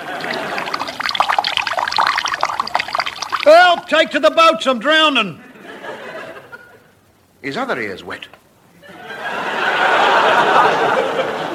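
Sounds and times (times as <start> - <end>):
water pouring from a jug into a funnel: 0.0 - 3.9
speech: 3.4 - 5.4, 7.4 - 8.4
laughter: 8.8 - 11.5.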